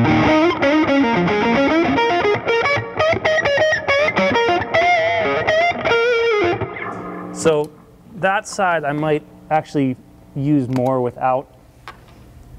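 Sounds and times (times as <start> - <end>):
heavily distorted electric guitar through a Duelist pedal playing a blues line in B flat: 0.0 - 7.8
speech: 7.4 - 11.6.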